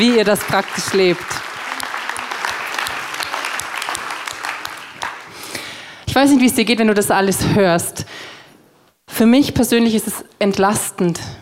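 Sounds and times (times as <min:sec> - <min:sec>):
speech: 0:00.0 - 0:01.4, 0:06.2 - 0:08.2, 0:09.2 - 0:11.3
audience applause: 0:00.0 - 0:05.8.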